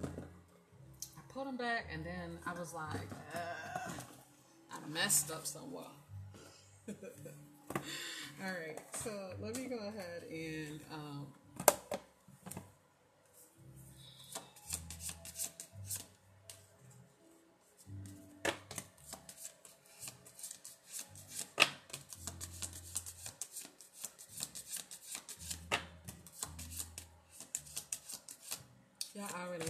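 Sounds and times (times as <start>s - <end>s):
speech: 1.4s - 4.1s, 4.8s - 6.0s, 6.9s - 11.7s
deck of cards shuffled by hand: 14.2s - 16.7s, 17.9s - 29.6s.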